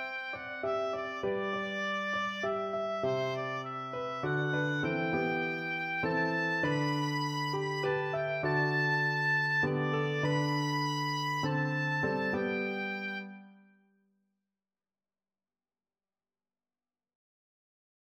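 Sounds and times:
oboe playing a folk song: 0.0 - 13.6.

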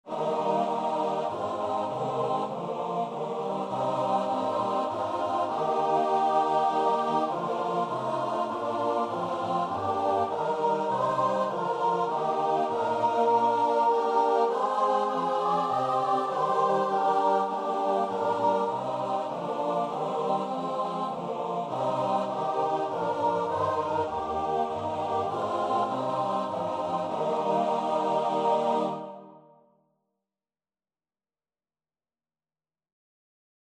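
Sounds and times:
choir singing: 0.0 - 29.6.

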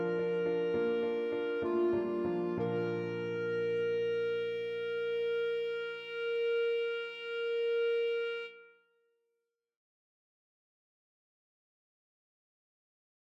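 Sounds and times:
clarinet: 0.0 - 8.9.

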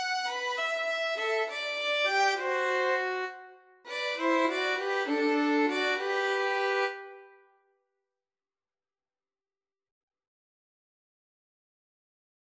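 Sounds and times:
violin trio playing a pastorale: 0.0 - 7.2.

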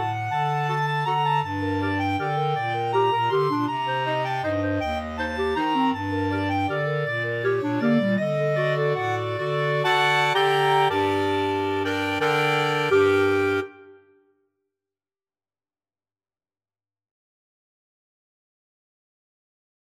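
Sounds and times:
clarinet choir of six clarinets: 0.0 - 14.1.

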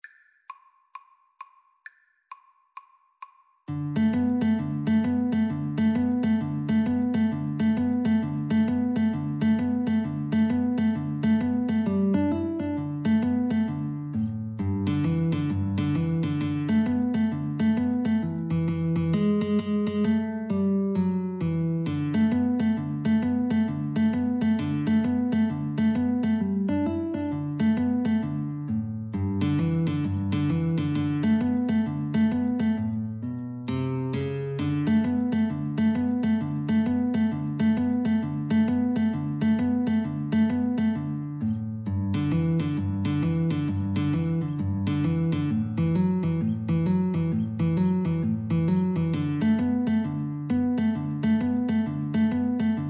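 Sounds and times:
guitar and clarinet duet: 3.7 - 52.8.

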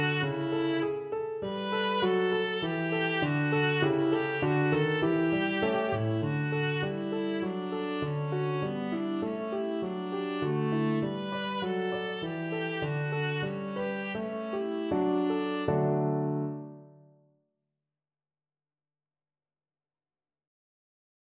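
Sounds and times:
viola: 0.0 - 16.8.

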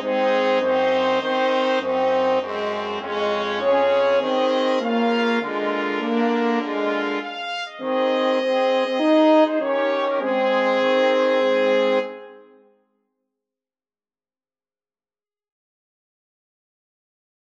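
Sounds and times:
brass quartet playing: 0.0 - 12.6.

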